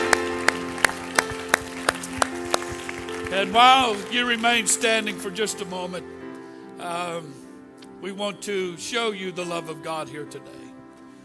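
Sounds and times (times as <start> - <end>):
audience clapping hands: 0.0 - 5.7
speech: 3.4 - 6.2, 6.8 - 7.4, 8.0 - 10.6.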